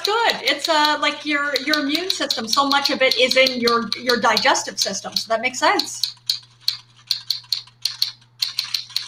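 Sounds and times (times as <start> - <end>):
typing notes on a keyboard: 0.0 - 9.0
speech: 0.6 - 6.3.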